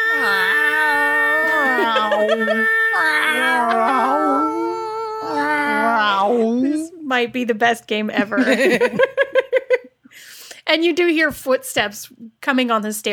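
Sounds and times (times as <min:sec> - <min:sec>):
people imitating cats caterwauling: 0:00.0 - 0:07.0
laughter: 0:01.0 - 0:06.8, 0:08.2 - 0:09.9
speech: 0:06.1 - 0:09.4, 0:10.7 - 0:13.1.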